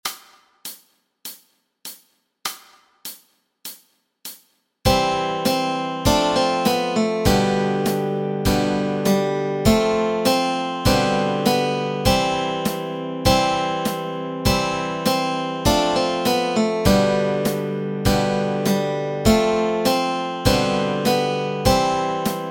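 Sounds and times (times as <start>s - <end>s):
Christmas carol melody and chords: 4.9s - 22.4s.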